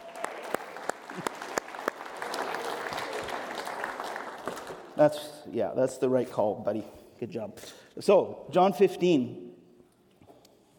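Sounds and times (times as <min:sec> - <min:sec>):
audience clapping: 0:00.0 - 0:05.2
speech: 0:05.0 - 0:09.4.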